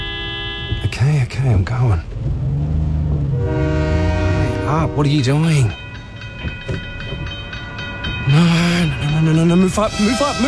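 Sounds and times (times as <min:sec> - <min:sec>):
speech: 0:01.0 - 0:02.8, 0:04.7 - 0:05.8, 0:08.3 - 0:10.4
loud low train horn blast: 0:03.3 - 0:05.5, 0:09.8 - 0:10.4
train rumbling past a level crossing: 0:06.2 - 0:09.8.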